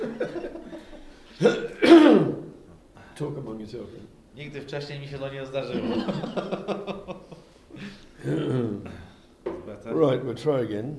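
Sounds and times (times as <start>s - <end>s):
laughter: 0.0s - 1.6s, 5.7s - 7.9s
speech: 1.4s - 2.2s, 3.2s - 9.0s, 9.9s - 10.9s
person coughing after choking on water: 1.4s - 2.5s, 7.8s - 9.1s.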